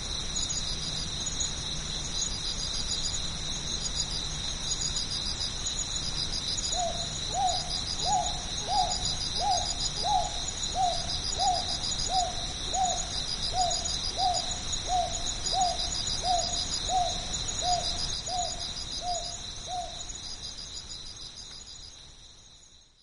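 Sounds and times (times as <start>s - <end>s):
crickets chirping: 0.0s - 23.0s
northern boobook hooting: 6.7s - 20.0s.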